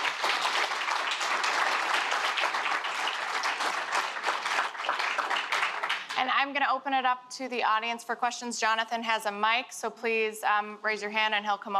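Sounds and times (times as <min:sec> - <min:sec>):
audience applauding panelists at a panel discussion: 0:00.0 - 0:06.3
speech: 0:06.4 - 0:11.7.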